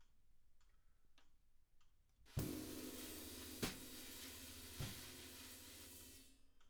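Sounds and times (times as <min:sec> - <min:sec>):
drums: 0:02.3 - 0:06.6.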